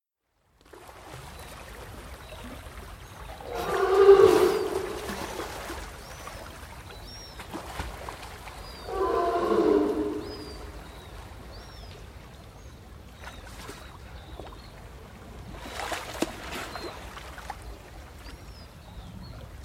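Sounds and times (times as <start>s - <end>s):
sea lion bellow, low hoarse harmonic roar: 3.4s - 5.6s, 8.8s - 10.9s.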